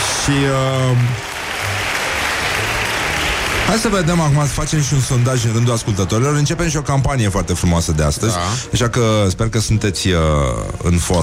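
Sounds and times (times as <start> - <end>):
applause: 0.0 - 7.4
speech: 0.2 - 1.3, 3.7 - 11.2.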